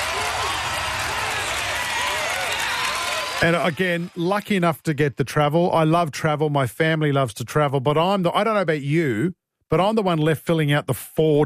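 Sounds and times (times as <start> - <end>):
faint cheers: 0.0 - 4.3
round of applause: 0.0 - 4.4
speech: 3.4 - 11.4.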